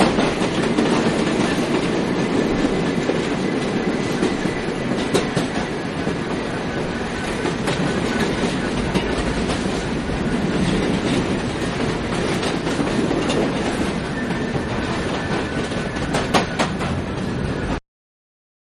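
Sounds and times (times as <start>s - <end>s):
subway train riding heard between cars: 0.0s - 17.8s.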